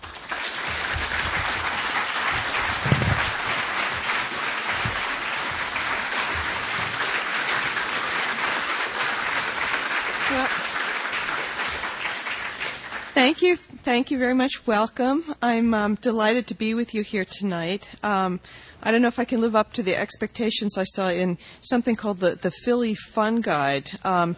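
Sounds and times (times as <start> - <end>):
audience applause welcoming the author of The Dark Side: 0.0 - 13.2
speech: 13.2 - 24.3.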